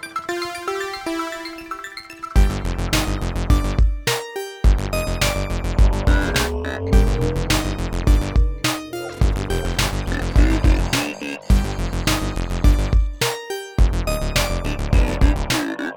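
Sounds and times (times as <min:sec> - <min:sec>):
electro breakdance music: 0:02.4 - 0:15.9.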